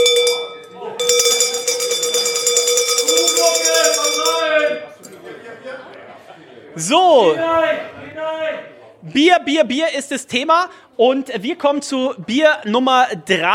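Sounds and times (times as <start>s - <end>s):
bell ringing: 0.0s - 5.2s
laughter: 0.7s - 1.4s, 3.1s - 9.0s
speech: 6.8s - 13.5s.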